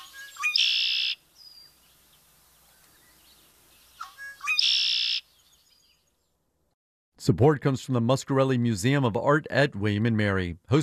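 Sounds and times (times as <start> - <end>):
glossy blackbird with red shoulders outlined in yellow singing gurgling song: 0.0 - 6.3
speech: 7.2 - 10.8.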